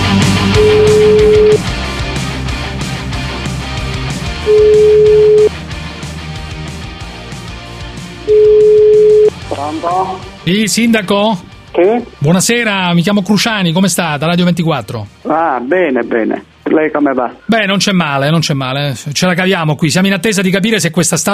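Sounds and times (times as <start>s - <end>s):
telephone ringback tone of a call to a town mayor: 0.2s - 1.6s, 4.5s - 5.5s, 8.3s - 9.4s
speech: 10.0s - 21.3s.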